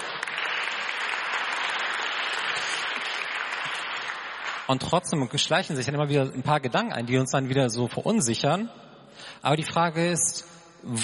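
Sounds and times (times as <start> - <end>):
audience applause: 0.0 - 4.8
speech: 4.7 - 11.0.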